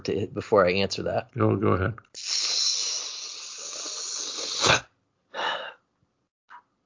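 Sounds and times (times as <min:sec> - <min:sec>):
speech: 0:00.0 - 0:02.5
deep teeth suck: 0:02.2 - 0:04.9.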